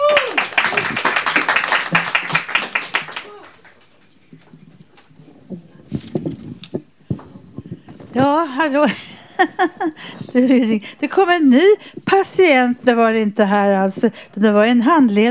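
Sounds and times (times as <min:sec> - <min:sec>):
audience applause: 0:00.0 - 0:04.0
speech: 0:08.2 - 0:15.2
laughter: 0:08.8 - 0:10.8.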